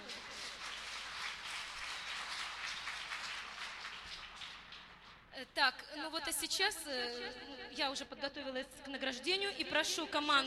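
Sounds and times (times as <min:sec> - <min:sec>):
audience applause: 0:00.0 - 0:05.2
speech: 0:05.4 - 0:10.4.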